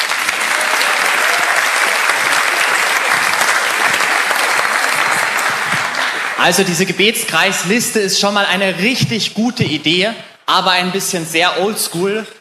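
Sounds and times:
audience applause: 0.0s - 6.8s
speech: 6.4s - 12.3s.

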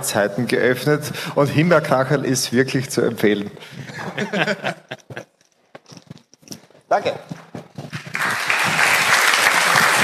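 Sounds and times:
speech: 0.0s - 5.0s, 6.9s - 7.2s
laughter: 3.7s - 5.4s
audience applause: 7.9s - 10.0s.

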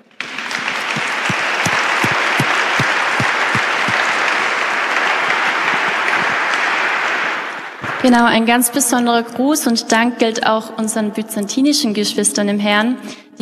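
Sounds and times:
audience applause: 0.2s - 8.0s
speech: 8.0s - 13.4s.

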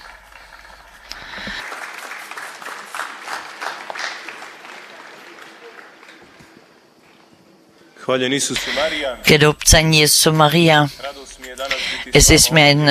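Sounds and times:
audience applause: 0.0s - 7.0s
speech: 8.1s - 11.1s, 12.1s - 12.8s.

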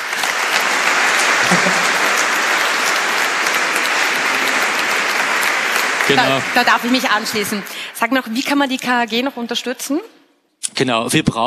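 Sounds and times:
audience applause: 0.0s - 9.3s
laughter: 0.4s - 7.8s
speech: 6.1s - 11.4s.

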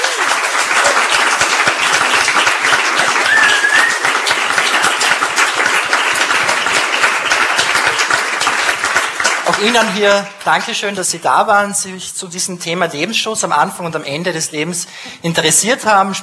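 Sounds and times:
audience applause: 0.0s - 10.4s
speech: 9.6s - 16.2s.

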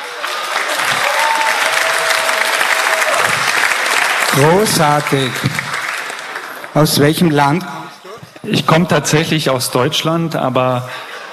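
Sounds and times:
audience applause: 0.0s - 8.2s
speech: 4.4s - 5.6s, 6.8s - 7.8s, 8.5s - 11.1s.

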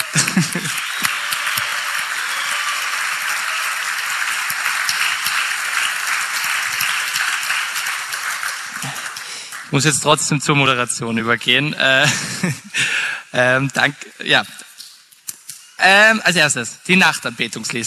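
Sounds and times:
laughter: 0.0s - 1.9s, 11.8s - 13.0s
crowd applauding: 0.0s - 10.9s
speech: 9.8s - 14.6s, 15.8s - 17.8s.

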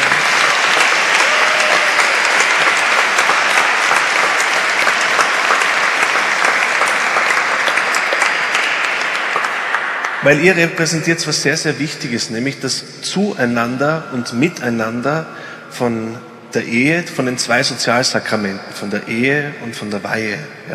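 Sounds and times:
audience applause: 0.0s - 10.7s
speech: 10.2s - 20.7s.

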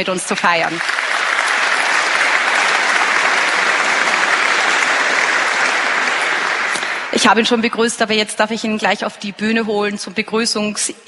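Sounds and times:
speech: 0.0s - 1.2s, 7.1s - 11.0s
audience applause: 0.0s - 7.6s.

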